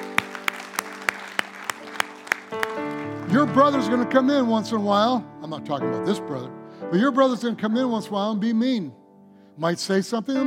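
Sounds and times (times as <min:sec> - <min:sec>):
audience applause: 0:00.0 - 0:04.0
speech: 0:03.3 - 0:09.0, 0:09.6 - 0:10.4.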